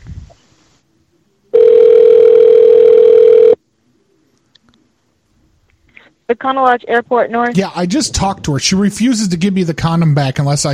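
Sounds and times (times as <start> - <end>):
telephone on-hold tone: 1.6 - 3.6
speech: 6.3 - 10.7.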